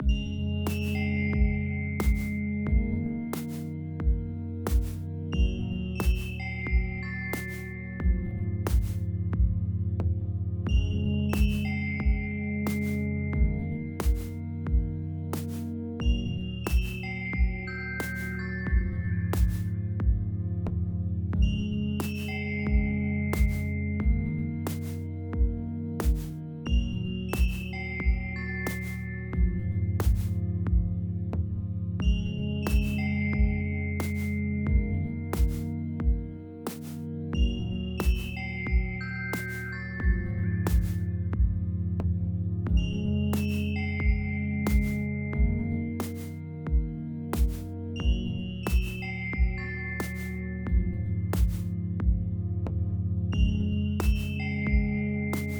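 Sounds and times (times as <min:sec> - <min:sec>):
slow heavy music loop: 0:00.0 - 0:55.5.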